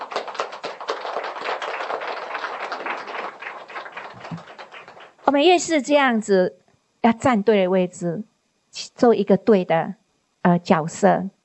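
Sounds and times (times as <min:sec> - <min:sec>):
audience applause: 0:00.0 - 0:05.2
speech: 0:05.3 - 0:08.3, 0:09.0 - 0:11.4.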